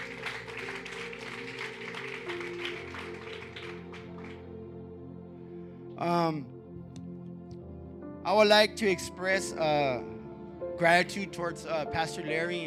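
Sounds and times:
audience applause: 0.0 - 4.4
speech: 6.0 - 6.6, 8.3 - 10.1, 10.8 - 12.6.

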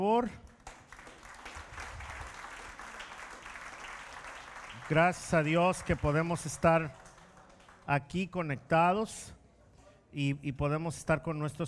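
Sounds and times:
speech: 0.0 - 0.5, 4.9 - 7.0, 7.9 - 9.4, 10.1 - 11.6
audience applause: 0.6 - 6.2, 6.8 - 7.9.

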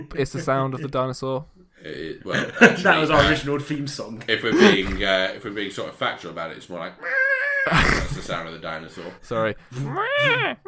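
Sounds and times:
speech: 0.0 - 10.6
voice imitating a PlayStation starting up with a hummed tone: 9.8 - 10.6.

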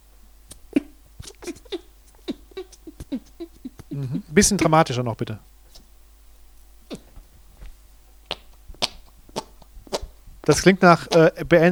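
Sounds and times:
voice imitating farting with the mouth: 0.7 - 4.0, 6.9 - 7.3, 8.2 - 11.4
speech: 4.0 - 5.5, 10.5 - 11.6.

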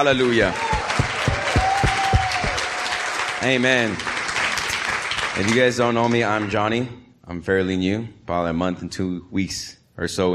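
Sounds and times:
speech: 0.0 - 0.6, 3.4 - 4.1, 5.4 - 10.3
audience clapping: 0.0 - 6.9.

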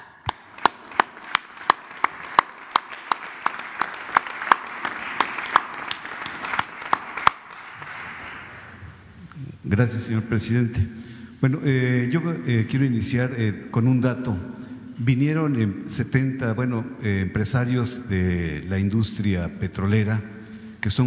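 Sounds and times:
audience applause: 0.0 - 8.8
speech: 9.7 - 21.0.

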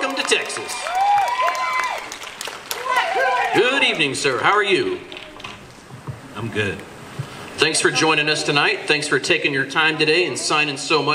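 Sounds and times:
audience applause: 0.0 - 4.9
speech: 3.9 - 5.2, 6.4 - 6.9, 7.6 - 11.1.

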